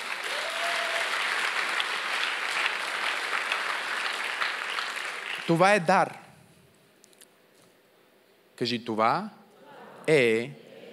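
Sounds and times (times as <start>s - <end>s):
church congregation applauding during a sermon: 0.0s - 6.1s
speech: 5.5s - 6.2s, 8.6s - 9.4s, 10.1s - 10.6s.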